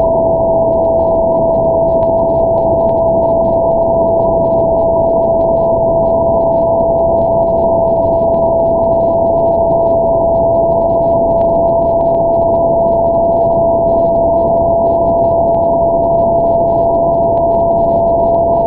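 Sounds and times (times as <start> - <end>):
moon lander radio signal on 2280.0 MHz approaching perigee: 0.0 - 18.6.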